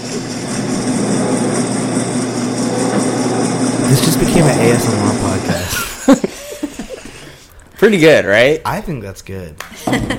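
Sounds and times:
passing train roar: 0.0 - 5.8
washing machine churning: 0.0 - 6.0
speech: 4.2 - 6.5, 7.8 - 10.1
laughter: 5.5 - 7.3.

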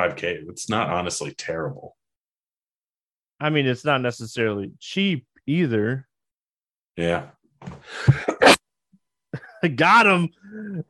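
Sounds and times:
speech: 0.0 - 2.0, 3.4 - 6.1, 7.0 - 8.5, 9.6 - 10.8
person sneezing: 7.9 - 8.6.

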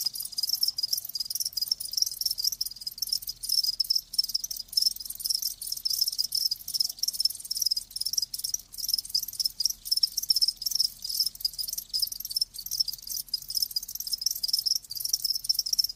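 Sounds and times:
crickets chirping: 0.0 - 15.9.

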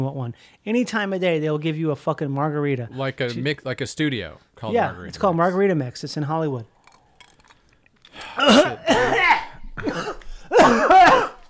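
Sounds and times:
speech: 0.0 - 6.7, 8.2 - 9.1
person coughing after choking on Diet Coke: 8.2 - 11.4.

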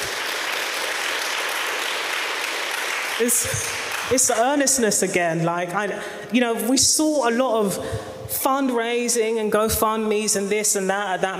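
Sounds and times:
audience applause: 0.0 - 4.2
speech: 3.2 - 11.3.

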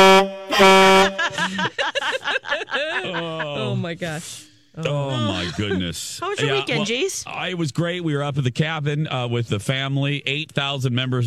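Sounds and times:
ocean horn blast: 0.0 - 1.3
laughter: 0.5 - 4.0, 4.8 - 7.2
speech: 1.3 - 11.2.

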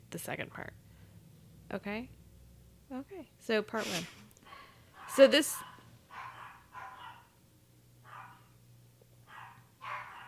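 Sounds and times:
speech: 0.1 - 0.9, 1.7 - 2.2, 2.9 - 4.2, 5.2 - 5.7
dog barking: 4.5 - 7.4, 8.0 - 8.6, 9.3 - 10.2.

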